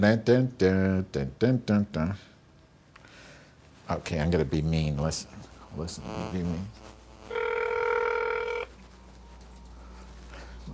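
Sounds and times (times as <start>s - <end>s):
speech: 0.0s - 2.3s, 3.9s - 6.9s
electronic telephone ringing: 7.3s - 8.8s.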